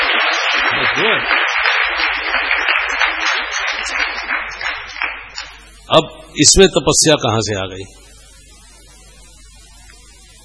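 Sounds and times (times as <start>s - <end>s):
audience clapping in welcome: 0.0s - 5.7s
speech: 5.9s - 8.0s.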